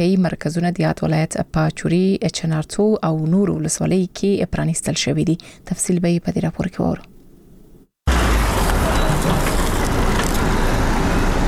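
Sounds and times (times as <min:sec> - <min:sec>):
speech: 0:00.0 - 0:07.1
trucks in Uruzgan province loaded with medical supplies rumbling: 0:08.1 - 0:11.4.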